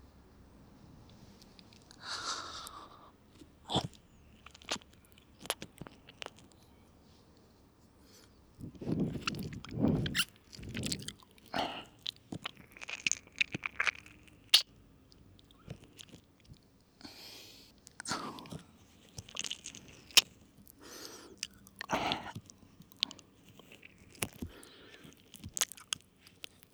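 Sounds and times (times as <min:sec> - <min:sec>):
ear licking sounds in right ear: 0:01.3 - 0:06.6, 0:08.0 - 0:26.7.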